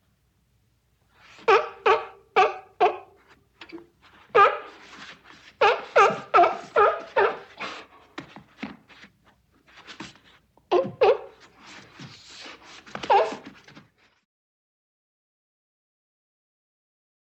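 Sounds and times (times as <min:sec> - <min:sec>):
seal barking: 0:01.4 - 0:03.2, 0:04.4 - 0:04.8, 0:05.6 - 0:07.9, 0:10.7 - 0:11.4, 0:13.1 - 0:13.4.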